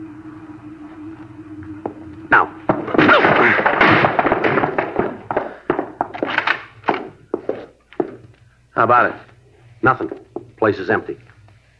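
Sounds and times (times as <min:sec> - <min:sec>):
heavy thuds: 0:01.8 - 0:08.6
speech: 0:02.3 - 0:02.6, 0:08.8 - 0:11.2
splintering and rattling crash: 0:02.6 - 0:07.2
sharp knocks and clatters: 0:02.6 - 0:08.4
door being forced open: 0:02.7 - 0:08.2.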